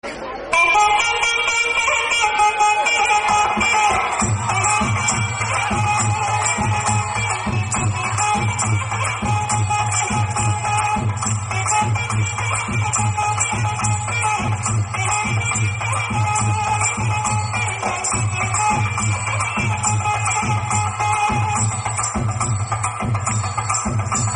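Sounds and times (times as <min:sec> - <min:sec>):
soft instrumental music ringtone: 0:00.6 - 0:24.3.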